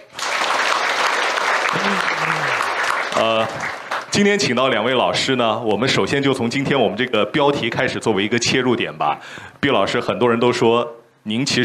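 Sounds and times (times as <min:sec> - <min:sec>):
audience applause: 0:00.0 - 0:04.4
speech: 0:01.7 - 0:02.3, 0:03.2 - 0:11.6.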